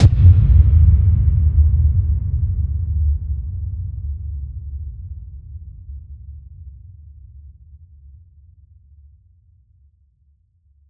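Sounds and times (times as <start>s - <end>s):
impact: 0.0s - 3.2s.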